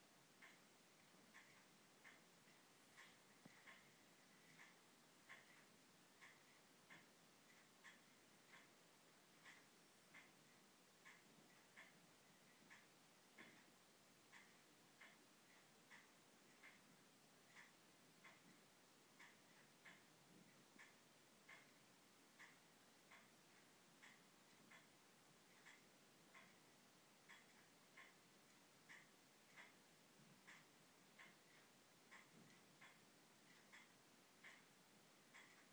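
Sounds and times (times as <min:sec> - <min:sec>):
ticking: 0:00.4 - 0:35.7.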